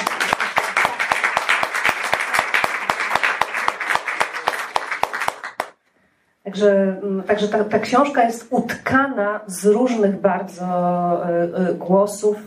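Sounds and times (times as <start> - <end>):
audience applause: 0.0 - 5.8
speech: 6.5 - 12.4.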